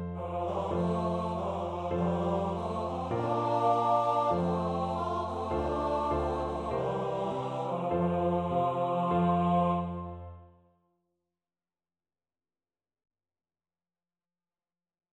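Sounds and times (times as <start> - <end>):
vocal duet: 0.0 - 10.2.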